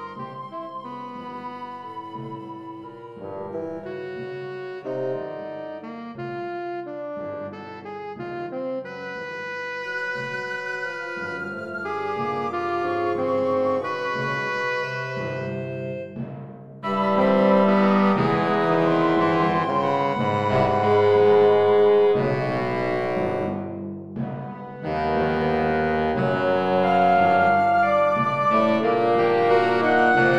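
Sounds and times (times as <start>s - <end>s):
saxophone band playing: 0.0s - 7.6s, 8.2s - 16.2s, 16.8s - 23.6s, 24.4s - 30.3s.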